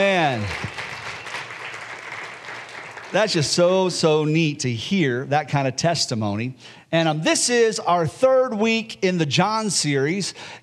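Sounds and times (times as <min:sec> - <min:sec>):
speech: 0:00.0 - 0:00.9, 0:03.1 - 0:10.6
audience applause: 0:00.0 - 0:03.9.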